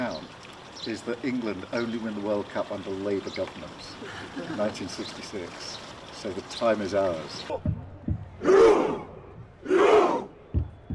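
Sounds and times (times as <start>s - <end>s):
speech: 0.8s - 7.7s
football fans' roar chant: 8.3s - 10.4s.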